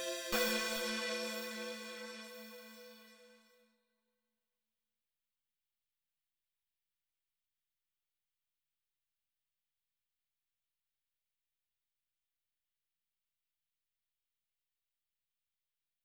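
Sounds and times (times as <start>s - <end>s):
A minor synth loop: 0.0s - 3.3s.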